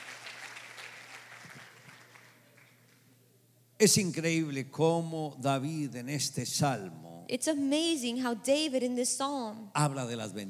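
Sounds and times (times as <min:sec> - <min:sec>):
audience applause: 0:00.0 - 0:03.0
speech: 0:03.8 - 0:10.4.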